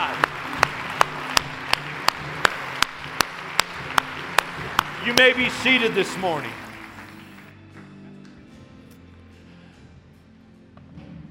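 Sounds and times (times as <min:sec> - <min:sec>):
church congregation clapping at an Easter service to welcome new believers: 0:00.0 - 0:08.4
speech: 0:05.0 - 0:06.6.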